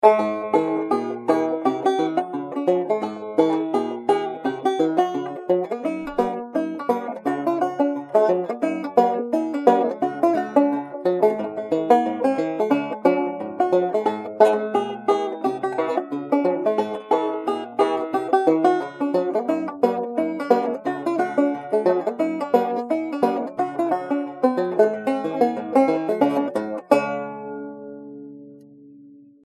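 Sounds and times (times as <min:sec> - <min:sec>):
funky banjo: 0:00.0 - 0:28.6.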